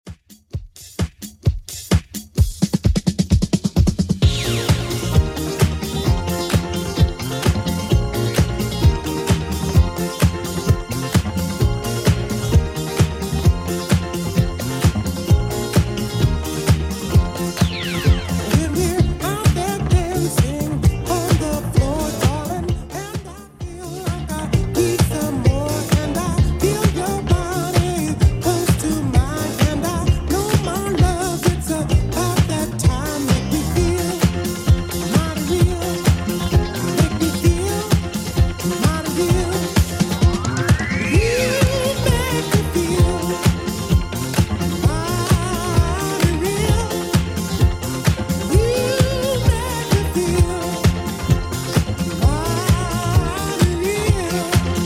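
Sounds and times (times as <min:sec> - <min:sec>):
70s drum loop at 130 bpm: 0:00.0 - 0:54.8.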